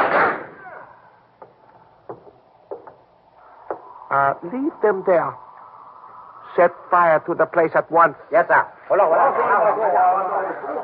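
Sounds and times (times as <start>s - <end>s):
gunfire in a radio drama: 0.0s - 0.6s
speech: 4.1s - 5.5s, 6.6s - 10.8s.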